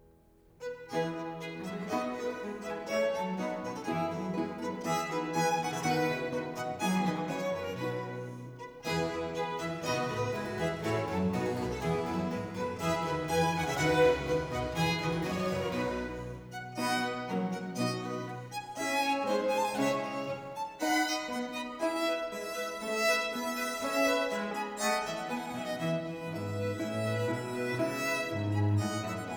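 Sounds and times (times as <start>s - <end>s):
concerto grosso gavotte, allegro: 0.7s - 29.3s.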